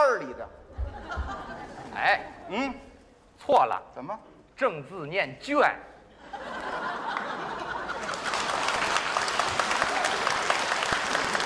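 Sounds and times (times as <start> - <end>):
speech: 0.1 - 1.3, 2.0 - 6.8
laughter: 0.7 - 2.4, 6.1 - 8.6
audience applause: 6.9 - 11.4.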